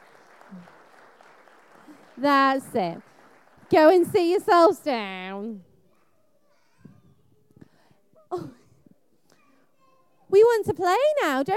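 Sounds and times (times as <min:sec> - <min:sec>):
audience applause: 0:00.0 - 0:04.0
speech: 0:00.5 - 0:00.8, 0:02.2 - 0:03.1, 0:03.7 - 0:05.7, 0:08.3 - 0:08.6, 0:10.3 - 0:11.5.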